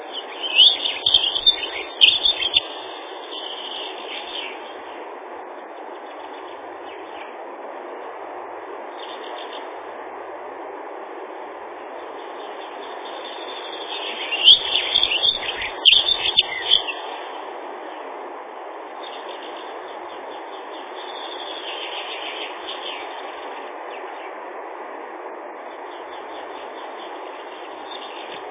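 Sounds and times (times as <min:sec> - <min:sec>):
Dunnock song, Prunella modularis, thin high twittering: 0:00.0 - 0:05.1, 0:05.8 - 0:07.4, 0:08.9 - 0:09.8, 0:12.0 - 0:18.0, 0:18.9 - 0:24.4, 0:25.6 - 0:28.5.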